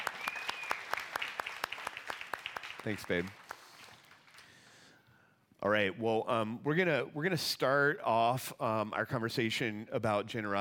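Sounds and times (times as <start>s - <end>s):
audience round of applause: 0.0s - 4.4s
faint whistle: 0.2s - 0.9s
speech: 2.8s - 3.4s, 5.6s - 10.6s.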